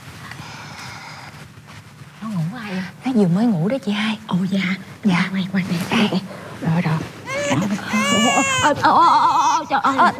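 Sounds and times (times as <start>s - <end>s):
speech: 2.2s - 10.1s
infant crying and wailing: 7.3s - 10.1s.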